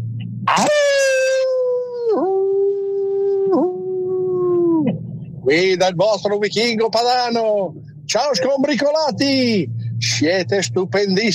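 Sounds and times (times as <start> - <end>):
person imitating a wolf howl: 0.5 - 4.9
speech: 5.5 - 11.3.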